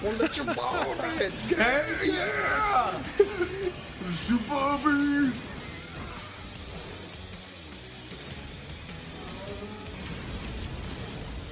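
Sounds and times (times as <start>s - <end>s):
laughter: 0.0s - 4.3s
speech: 0.0s - 5.6s
movie trailer explosions: 10.0s - 11.5s.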